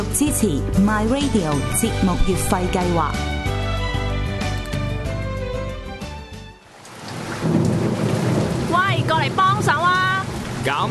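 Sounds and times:
speech: 0.0 - 3.4, 10.6 - 10.8
short burst of music: 0.0 - 6.6
steady hissing rainfall: 6.5 - 10.8
deep rumble of thunder: 7.1 - 10.8.

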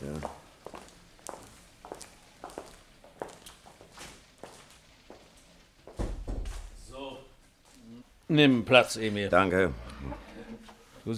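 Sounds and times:
footsteps on a hard floor: 0.2 - 6.8
speech: 8.3 - 10.3.

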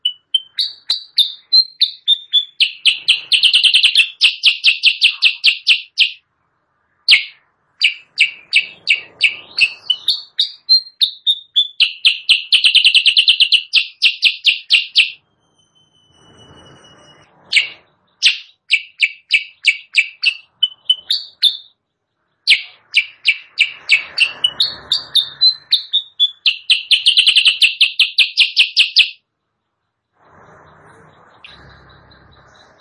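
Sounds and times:
sooty-headed bulbul chirping song: 0.0 - 32.7.

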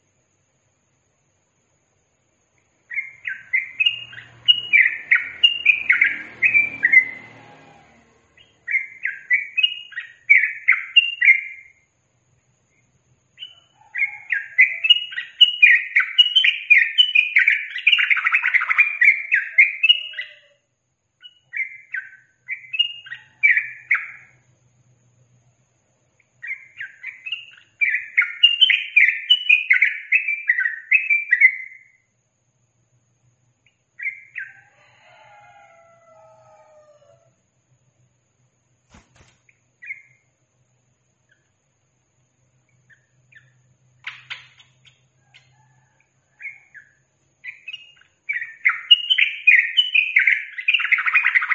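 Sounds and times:
Yellow-vented bulbul song: 2.3 - 12.0, 12.7 - 24.6, 26.1 - 32.2, 33.5 - 34.7, 38.9 - 45.7, 46.4 - 51.5.

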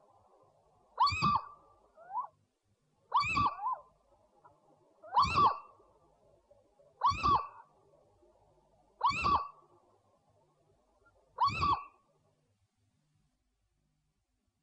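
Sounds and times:
owl calling with upslurred whistles: 1.0 - 2.3, 3.1 - 3.8, 5.1 - 5.7, 7.0 - 7.6, 9.0 - 9.6.

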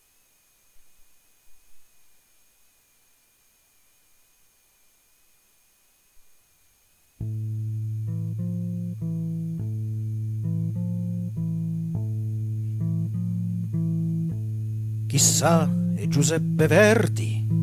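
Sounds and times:
recorded song with loud sustained reedy chords: 7.2 - 17.6
speech: 15.1 - 17.6.

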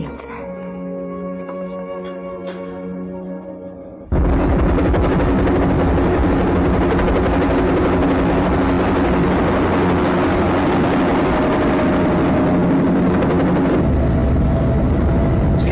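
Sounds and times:
speech: 0.1 - 0.4
helicopter flying overhead: 4.1 - 15.7.

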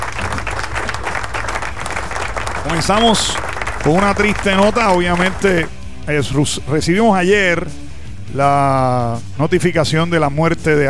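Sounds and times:
crowd clapping: 0.0 - 5.7
speech: 2.6 - 10.8.

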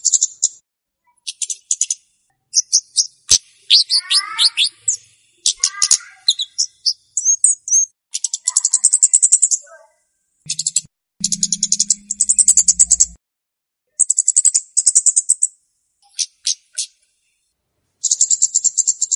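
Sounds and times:
flowerpecker calls used to lure birds: 0.0 - 9.8, 10.5 - 13.2, 13.9 - 15.5, 18.0 - 19.1.

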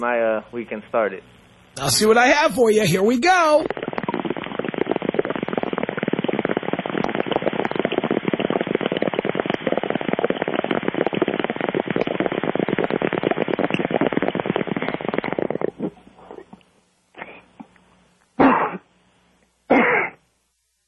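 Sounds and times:
speech: 0.0 - 3.9
bong bubbling: 1.8 - 17.8
person coughing after a bong hit: 18.4 - 18.8, 19.7 - 20.2.

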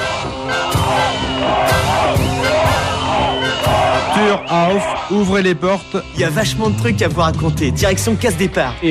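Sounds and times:
dense crowd of thousands of Berliners in Berlin murmuring and breathing heavily: 0.0 - 5.3
whoops and shouts from the crowd: 0.6 - 5.1
speech: 4.3 - 8.8.

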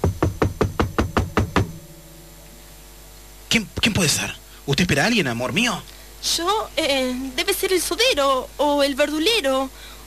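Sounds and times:
knocking on a door: 0.0 - 1.9
speech: 3.5 - 9.9.

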